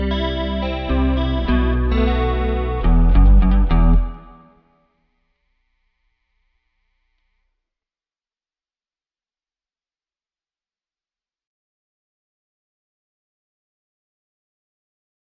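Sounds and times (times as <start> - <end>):
musical jam: 0.0 - 4.5.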